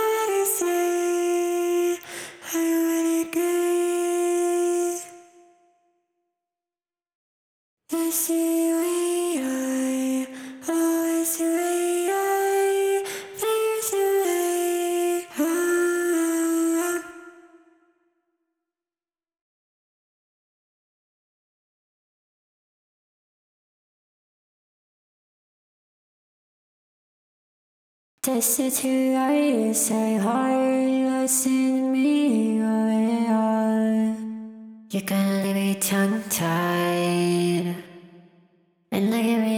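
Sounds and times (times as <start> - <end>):
vocals: 0.0 - 5.8, 7.9 - 17.9, 28.2 - 39.5.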